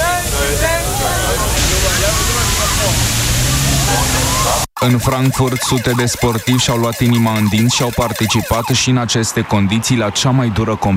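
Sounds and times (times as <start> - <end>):
water cannon spraying water on people in central Berlin: 0.8 - 8.8
speech: 4.8 - 10.9.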